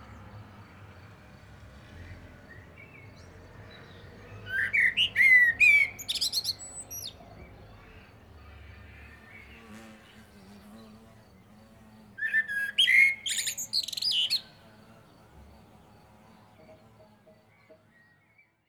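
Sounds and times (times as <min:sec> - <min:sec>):
common blackbird song: 0:03.7 - 0:18.6.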